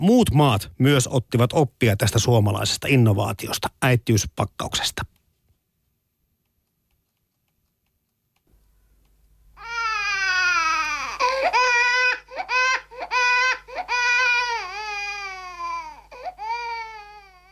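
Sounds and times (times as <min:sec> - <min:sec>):
speech: 0:00.0 - 0:05.1
newborn baby crying: 0:09.6 - 0:17.4.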